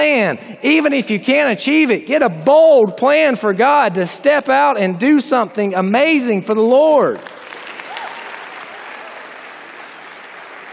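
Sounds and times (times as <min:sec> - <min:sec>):
speech: 0:00.0 - 0:07.5
women in the room clapping: 0:07.2 - 0:10.7.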